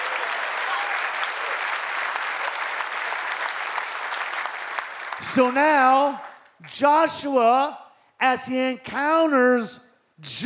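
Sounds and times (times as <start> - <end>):
audience clapping: 0.0 - 6.9
speech: 5.2 - 10.4.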